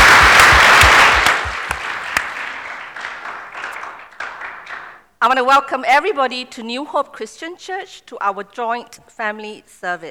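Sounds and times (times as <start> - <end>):
audience clapping: 0.0 - 5.0
speech: 5.2 - 10.0.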